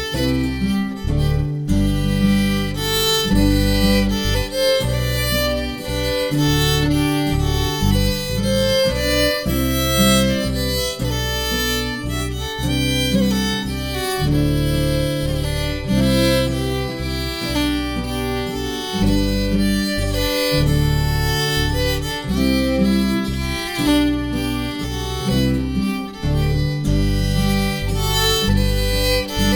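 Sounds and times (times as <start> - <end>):
guitar playing tune harmony: 0.0 - 29.5.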